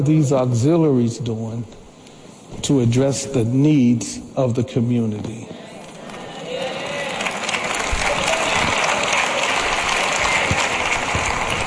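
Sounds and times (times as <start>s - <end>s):
speech: 0.0s - 1.8s, 2.5s - 5.6s
crowd applauding: 6.0s - 11.6s.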